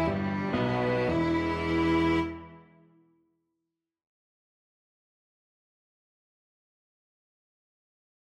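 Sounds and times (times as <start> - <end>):
piano quartet: 0.0 - 2.6.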